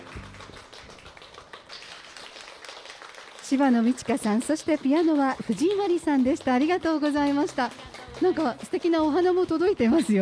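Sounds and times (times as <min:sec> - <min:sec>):
audience applause: 0:00.0 - 0:06.6
speech: 0:03.5 - 0:10.2.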